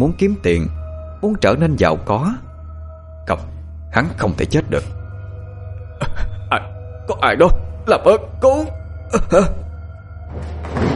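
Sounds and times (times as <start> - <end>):
speech: 0.0 - 2.5, 3.3 - 5.0, 6.0 - 9.6
door kicked open with heavy bangs: 10.3 - 10.9.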